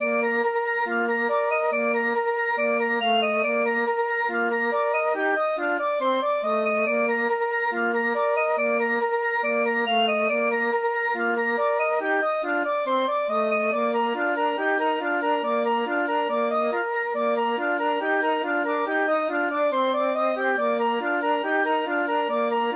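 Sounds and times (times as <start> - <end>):
flute trio playing: 0.0 - 22.7.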